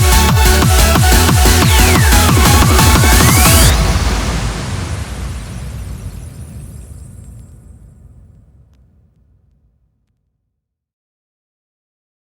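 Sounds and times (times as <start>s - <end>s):
instrumental music: 0.0s - 3.7s.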